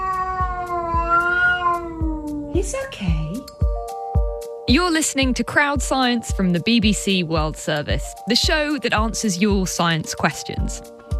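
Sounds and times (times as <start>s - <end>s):
cat yowling: 0.0s - 2.6s
speech: 2.6s - 3.4s, 4.7s - 11.0s.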